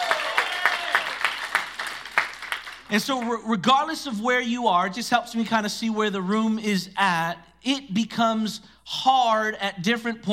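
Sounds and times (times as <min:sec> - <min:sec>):
audience applause: 0:00.0 - 0:02.9
speech: 0:02.9 - 0:10.3.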